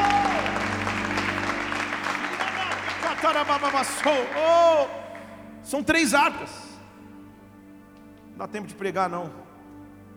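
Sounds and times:
audience applause: 0.0 - 5.6
sustained musical tone: 0.0 - 10.1
speech: 3.2 - 5.0, 5.6 - 6.7, 8.4 - 9.4.

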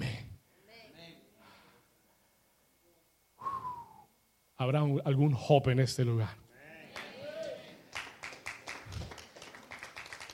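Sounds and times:
speech: 4.6 - 6.4
raised voices and cheers: 6.6 - 7.8
crowd applause: 7.0 - 10.3.

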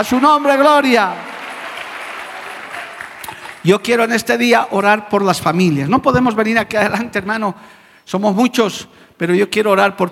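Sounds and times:
speech: 0.0 - 1.3, 3.6 - 10.1
audience applause: 0.0 - 4.1.

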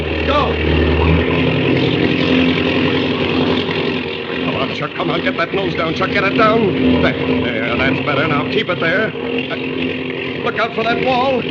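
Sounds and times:
engine revving at full throttle: 0.0 - 11.4
speech: 0.3 - 2.4, 4.9 - 11.4.

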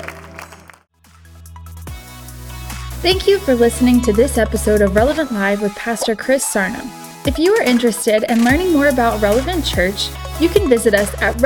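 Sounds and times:
audience clapping: 0.0 - 0.9
speech: 3.0 - 11.4.

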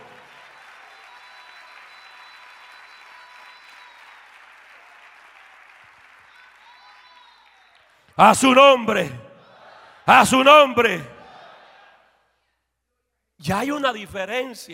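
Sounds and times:
audience applauding loudly: 0.0 - 9.2
speech: 8.2 - 9.2, 10.1 - 11.1, 13.4 - 14.7.

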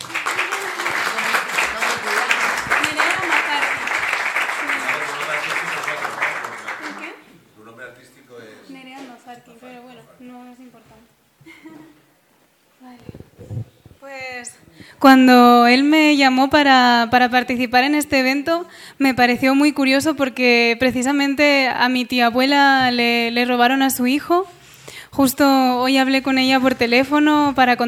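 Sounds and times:
audience applause: 0.0 - 7.2
speech: 15.0 - 24.5, 25.2 - 27.8.

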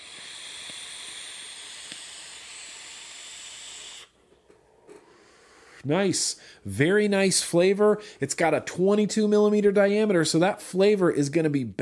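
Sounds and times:
vape pulled on a single-coil atomizer sizzling: 0.0 - 4.2
speech: 5.8 - 11.8.

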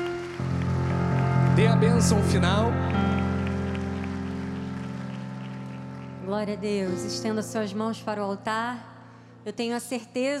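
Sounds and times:
audience applause: 0.0 - 6.6
speech: 1.6 - 3.2, 6.3 - 10.3.

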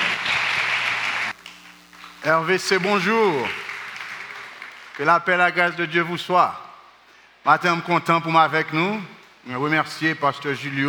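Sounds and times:
audience clapping: 0.0 - 5.5
faint low hum: 1.3 - 10.0
speech: 2.2 - 3.6, 5.0 - 6.6, 7.4 - 10.8.

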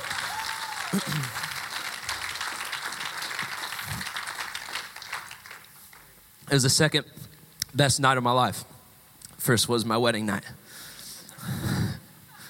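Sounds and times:
audience applause: 0.0 - 6.2
speech: 0.9 - 1.4, 6.5 - 8.7, 9.4 - 10.6.

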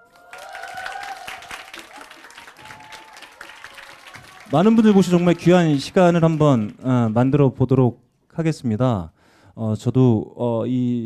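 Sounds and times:
audience applause: 0.0 - 7.6
speech: 4.5 - 11.0.

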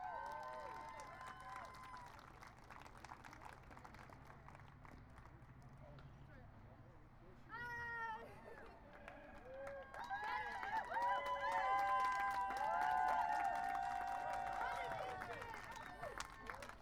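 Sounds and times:
rally crowd cheering and whooping: 0.0 - 1.9, 9.6 - 15.3
rally crowd clapping: 0.0 - 5.8, 8.6 - 16.8.

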